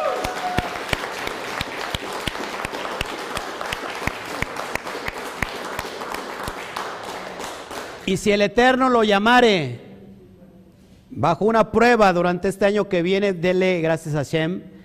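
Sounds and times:
loud audience applause: 0.0 - 8.0
rhythmic clapping: 0.0 - 8.3
speech: 8.1 - 9.8, 11.1 - 14.7.

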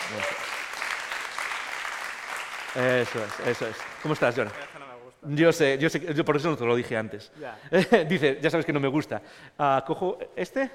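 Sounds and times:
audience applause: 0.0 - 4.9
speech: 0.1 - 0.5, 2.8 - 10.7.

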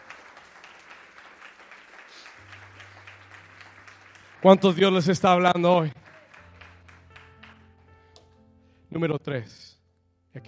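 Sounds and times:
crowd applause in a large room: 0.0 - 8.0
speech: 4.4 - 6.0, 9.0 - 10.4.

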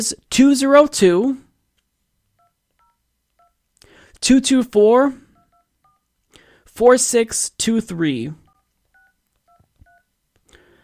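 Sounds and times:
speech: 0.0 - 1.4, 4.2 - 5.2, 6.8 - 8.4
telephone keypad DTMF tones dialing a US senator's office: 2.4 - 3.6, 5.3 - 6.1, 8.4 - 10.1.

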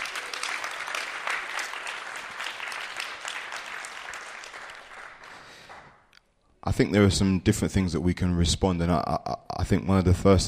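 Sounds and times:
audience applause: 0.0 - 6.0
speech: 6.6 - 10.4.

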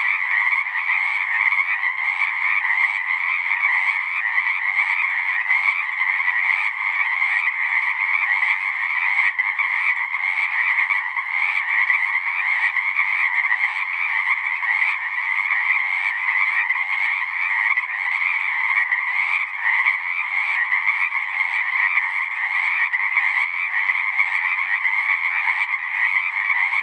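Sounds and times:
massed Pacific chorus frogs calling: 0.0 - 26.8.

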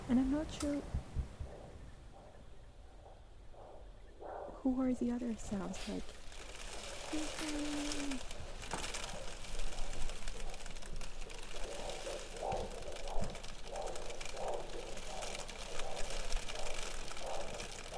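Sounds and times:
speech: 0.1 - 0.9, 4.7 - 6.2, 7.1 - 8.4
hail hitting a window: 5.8 - 17.9.

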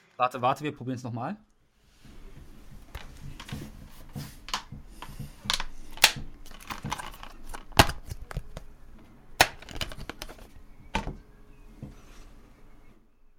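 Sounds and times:
speech: 0.2 - 1.5
board game taken out of its packaging: 5.4 - 8.7, 9.4 - 11.1.

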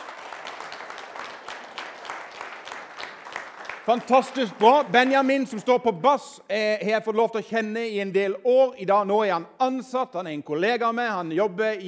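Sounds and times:
crowd clapping: 0.0 - 5.8
speech: 3.9 - 11.8.

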